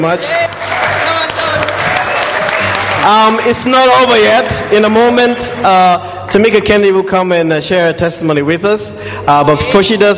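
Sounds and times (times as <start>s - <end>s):
speech: 0.0s - 1.8s, 3.0s - 10.1s
audience applause: 0.2s - 4.7s.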